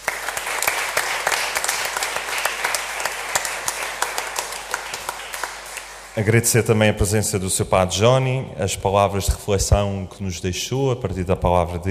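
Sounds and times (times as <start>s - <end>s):
crowd applauding: 0.0s - 6.4s
speech: 6.2s - 11.8s.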